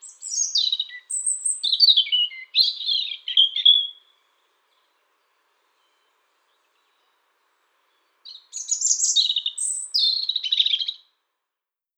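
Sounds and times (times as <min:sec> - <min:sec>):
Erithacus rubecula calling: 0:00.0 - 0:04.9, 0:07.9 - 0:11.1.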